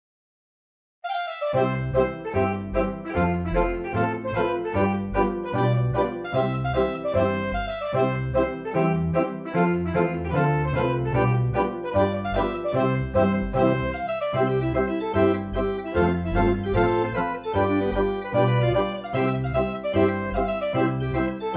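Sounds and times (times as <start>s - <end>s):
schottische dance music: 1.5s - 21.5s.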